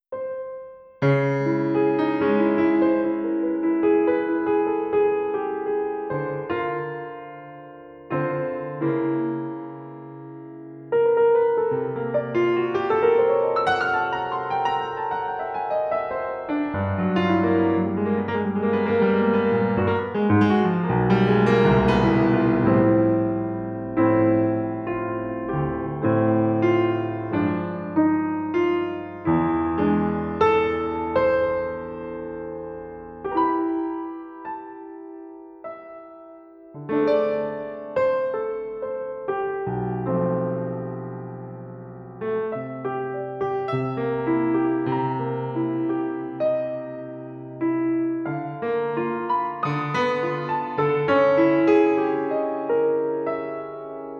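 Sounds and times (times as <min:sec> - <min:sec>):
piano: 0:00.0 - 0:54.1.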